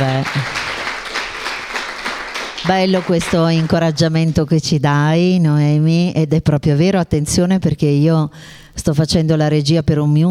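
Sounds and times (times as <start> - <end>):
speech: 0.0 - 0.7, 2.6 - 10.2
audience applause: 0.0 - 3.7.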